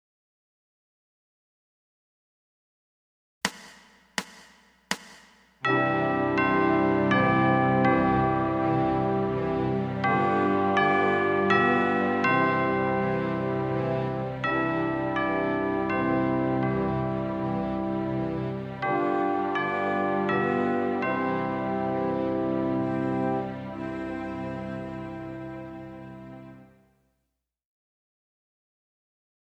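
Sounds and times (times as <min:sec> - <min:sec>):
clock tower bells: 0:05.7 - 0:26.5.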